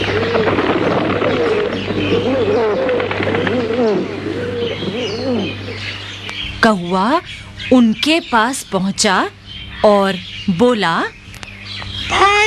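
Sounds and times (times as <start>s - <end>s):
pigeons cooing: 0.0s - 7.2s
constant low hum: 0.0s - 12.4s
light bird chirps: 0.0s - 12.4s
speech: 6.6s - 11.2s.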